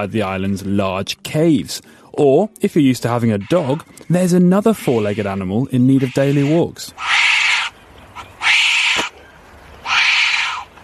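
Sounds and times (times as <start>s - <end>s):
speech: 0.0s - 7.1s
wombat giving loud raspy calls: 3.1s - 9.2s, 9.8s - 10.8s.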